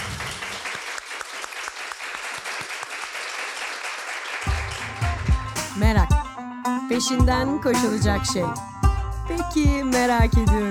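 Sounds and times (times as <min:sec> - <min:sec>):
crowd applause: 0:00.0 - 0:05.4
speech: 0:07.0 - 0:08.7, 0:09.3 - 0:10.6.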